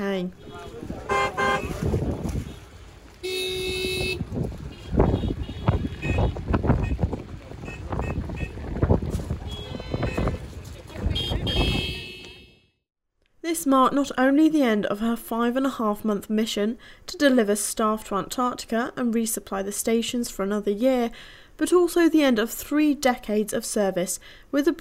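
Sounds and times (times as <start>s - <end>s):
speech: 0.0s - 0.4s, 13.6s - 24.7s
ship horns hooting as ship departs: 0.3s - 7.0s, 9.4s - 10.4s, 11.1s - 12.7s
gusty wind noise: 0.3s - 12.4s.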